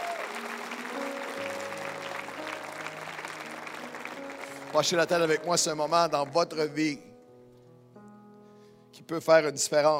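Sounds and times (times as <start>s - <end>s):
audience applause: 0.0s - 6.6s
speech: 4.7s - 7.1s, 9.1s - 9.9s.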